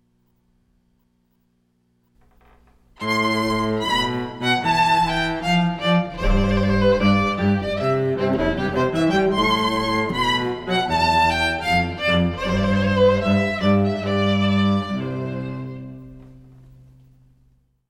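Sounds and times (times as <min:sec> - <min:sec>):
wedding march duet: 0:03.0 - 0:16.7.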